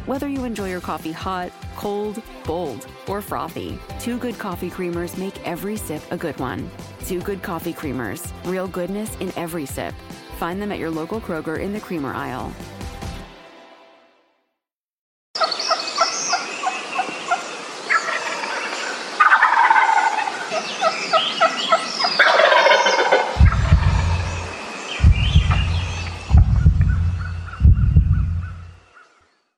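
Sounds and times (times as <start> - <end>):
speech: 0.1 - 12.8
wild turkeys gobbling: 15.4 - 24.5, 25.2 - 28.6
deep booming thumps: 23.2 - 28.8.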